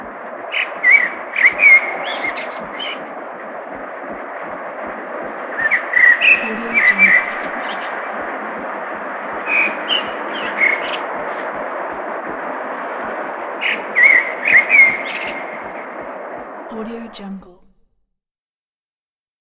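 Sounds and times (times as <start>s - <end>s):
city birds: 0.0s - 3.1s, 5.5s - 8.6s, 9.3s - 12.0s, 13.6s - 16.4s.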